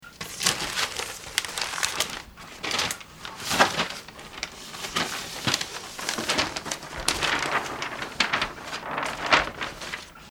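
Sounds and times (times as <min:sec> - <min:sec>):
paper rustling: 0:00.0 - 0:10.3.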